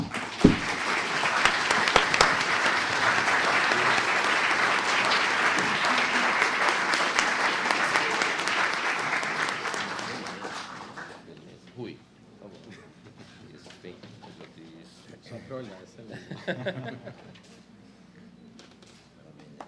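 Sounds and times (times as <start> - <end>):
audience applause: 0.0 - 11.2
laughter: 16.1 - 17.6.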